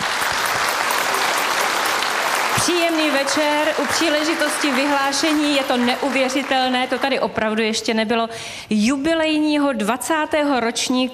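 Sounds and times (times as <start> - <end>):
audience applause in a congress centre at a radio poll awards evening: 0.0 - 7.4
speech: 2.6 - 11.1.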